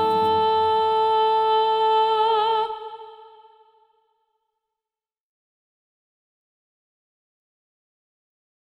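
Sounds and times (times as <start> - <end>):
SATB choir singing with prominent alto part: 0.0 - 3.6.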